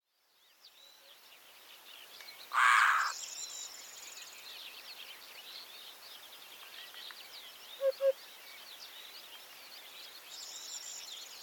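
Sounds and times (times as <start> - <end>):
Eurasian hoopoe Upupa epops giving soft low hooting triplets: 7.8 - 8.2.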